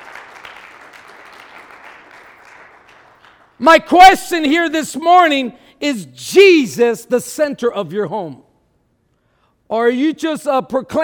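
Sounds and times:
audience clapping: 0:00.0 - 0:03.6
speech: 0:03.6 - 0:08.4, 0:09.7 - 0:11.0.

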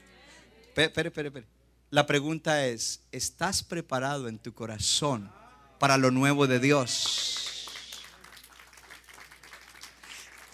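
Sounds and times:
speech: 0:00.8 - 0:07.5
audience applause: 0:06.8 - 0:10.5.

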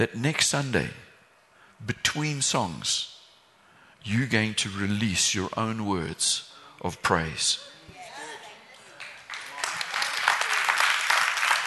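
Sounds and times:
speech: 0:00.0 - 0:01.0, 0:01.8 - 0:03.2, 0:04.0 - 0:07.7
audience clapping: 0:08.7 - 0:11.6.

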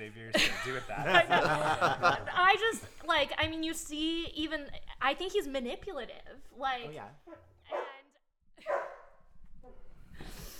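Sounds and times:
speech: 0:00.1 - 0:07.5
laughter: 0:00.3 - 0:02.6
dog barking: 0:07.3 - 0:08.0, 0:08.6 - 0:09.1.

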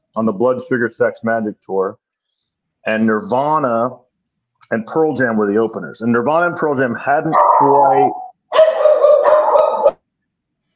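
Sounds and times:
speech: 0:00.2 - 0:04.0, 0:04.7 - 0:08.2
dog barking: 0:07.3 - 0:10.0.

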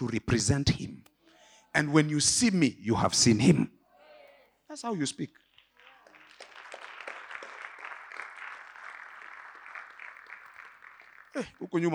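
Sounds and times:
speech: 0:00.0 - 0:01.0, 0:01.8 - 0:03.8, 0:04.7 - 0:05.4, 0:11.4 - 0:11.9
audience clapping: 0:05.4 - 0:11.9.

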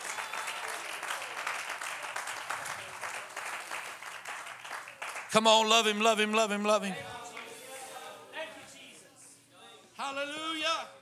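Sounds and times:
audience clapping hands: 0:00.0 - 0:07.5
speech: 0:05.3 - 0:07.2.

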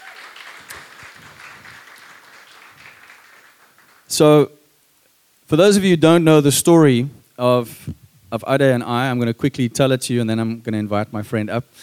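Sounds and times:
audience applause: 0:00.0 - 0:04.2
speech: 0:04.1 - 0:04.6, 0:05.5 - 0:11.8.

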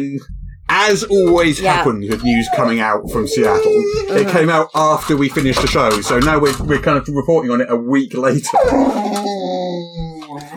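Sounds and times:
speech: 0:00.0 - 0:09.4
dogs whining: 0:01.8 - 0:04.4, 0:08.5 - 0:09.4.

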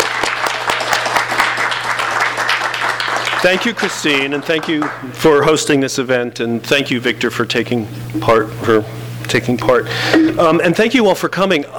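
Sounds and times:
audience applause: 0:00.0 - 0:05.4
speech: 0:03.4 - 0:11.7.

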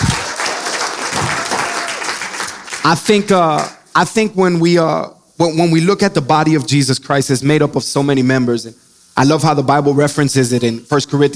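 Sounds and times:
audience clapping: 0:00.0 - 0:03.8
speech: 0:02.8 - 0:11.3.

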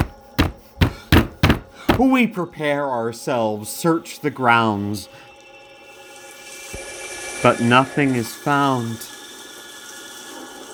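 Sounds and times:
violent knocking on a door: 0:00.0 - 0:02.2
speech: 0:02.0 - 0:05.3, 0:07.4 - 0:09.1.

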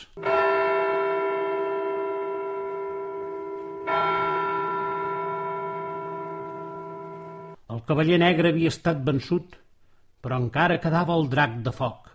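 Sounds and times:
church bell tolling: 0:00.2 - 0:07.6
speech: 0:07.9 - 0:09.6, 0:10.2 - 0:12.1.

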